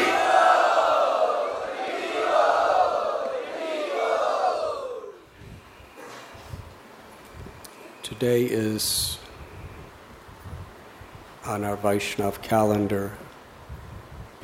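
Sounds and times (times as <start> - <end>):
crowd chanting in unison at a Vaishnava gathering: 0.0 - 5.2
speech: 8.1 - 9.2, 11.5 - 13.2.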